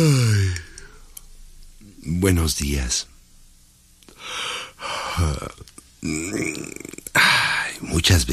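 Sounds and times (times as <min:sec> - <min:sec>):
person yawning: 0:00.0 - 0:00.8, 0:04.3 - 0:07.7
speech: 0:02.2 - 0:03.1, 0:05.2 - 0:07.0, 0:07.8 - 0:08.3.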